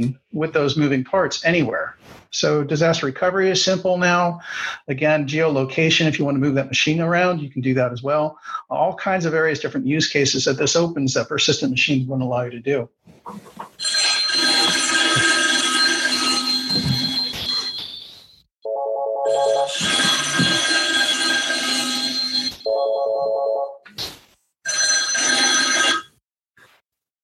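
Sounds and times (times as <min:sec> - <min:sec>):
speech: 0:00.0 - 0:14.0
RingCentral VoIP desk phone ringing: 0:13.8 - 0:18.1, 0:18.7 - 0:23.8, 0:24.7 - 0:26.2.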